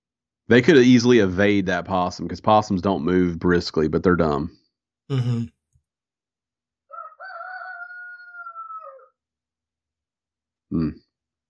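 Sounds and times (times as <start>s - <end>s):
speech: 0.5s - 5.6s, 10.7s - 11.0s
rooster crowing outside the door: 6.9s - 9.2s.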